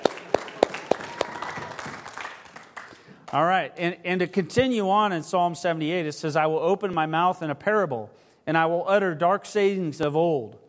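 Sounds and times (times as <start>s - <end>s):
group of people clapping in a reverberant room: 0.0s - 3.6s
speech: 3.3s - 10.6s.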